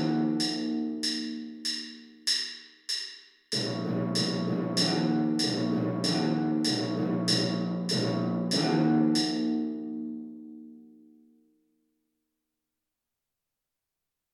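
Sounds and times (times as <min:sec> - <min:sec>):
timpani: 0:00.0 - 0:01.9, 0:03.5 - 0:10.1.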